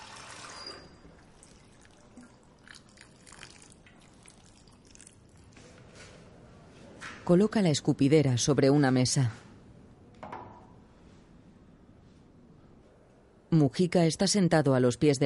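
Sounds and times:
water poured from a cup onto soil: 1.3s - 5.5s
speech: 7.3s - 9.4s, 13.8s - 15.2s.

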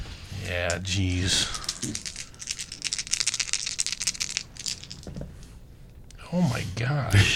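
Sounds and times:
dice rattling across a hard surface: 0.4s - 5.3s
speech: 0.5s - 2.1s, 6.3s - 7.3s.

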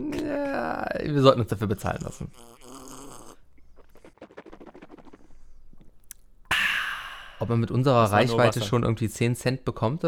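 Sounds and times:
speech: 0.0s - 2.8s, 7.4s - 10.0s
gulping: 0.0s - 8.6s
sips of ice-cold Coca-Cola being drunk: 2.2s - 7.6s.

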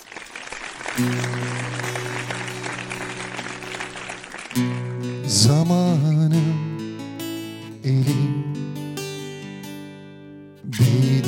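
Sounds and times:
applause: 0.0s - 5.5s
speech: 1.0s - 1.6s, 4.6s - 6.7s, 7.8s - 8.7s, 10.7s - 11.2s.

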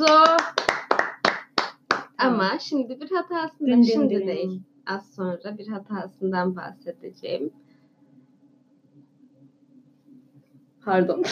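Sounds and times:
applause for the director: 0.0s - 2.2s
speech: 2.2s - 7.6s, 10.8s - 11.2s.

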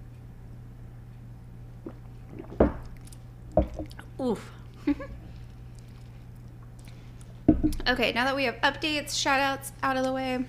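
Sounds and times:
person drinking a shot of whiskey: 1.8s - 4.1s
speech: 4.2s - 5.2s, 7.9s - 10.4s.

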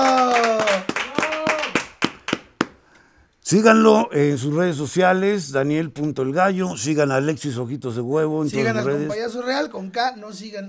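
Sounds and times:
hand claps: 0.0s - 2.9s
speech: 3.5s - 10.6s.

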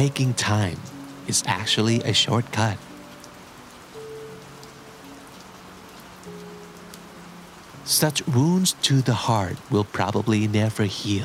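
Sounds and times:
speech: 0.0s - 2.9s, 7.9s - 11.2s
rain falling during thunderstorm: 0.0s - 11.2s.

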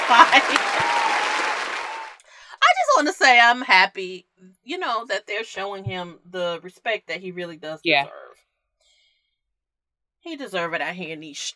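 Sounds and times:
audience clapping: 0.0s - 2.2s
faint voices cheering: 0.0s - 2.2s
speech: 0.1s - 1.3s, 3.0s - 8.2s, 10.2s - 11.5s.

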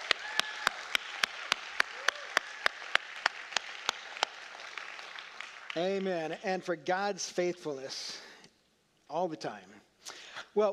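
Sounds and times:
audience clapping: 0.0s - 6.7s
speech: 5.8s - 8.3s, 9.1s - 10.7s.

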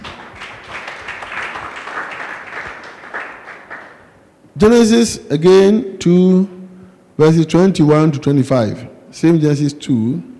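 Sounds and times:
crowd clapping: 0.0s - 4.2s
speech: 4.6s - 6.6s, 7.2s - 10.3s.

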